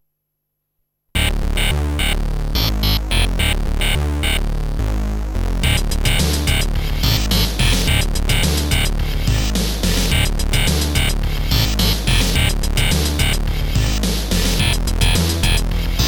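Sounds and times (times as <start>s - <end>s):
techno music: 1.2s - 16.0s.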